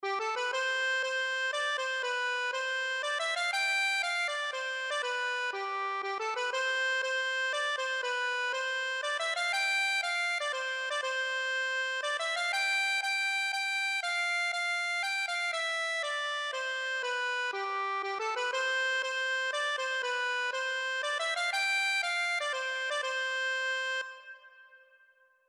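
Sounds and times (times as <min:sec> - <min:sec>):
accordion: 0:00.0 - 0:24.8.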